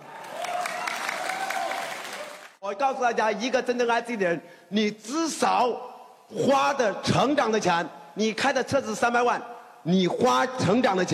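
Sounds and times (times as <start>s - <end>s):
audience applause: 0.0s - 2.6s
speech: 2.7s - 11.1s.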